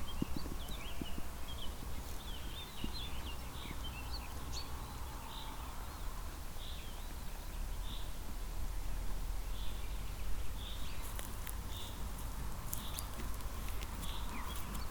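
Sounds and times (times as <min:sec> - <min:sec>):
sheep grazing and chewing: 0:00.0 - 0:14.9.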